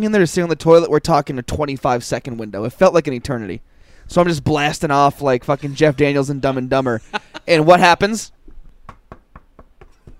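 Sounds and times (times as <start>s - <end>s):
speech: 0.0s - 8.4s
laughter: 5.4s - 8.1s
knocking on a door: 8.8s - 10.1s.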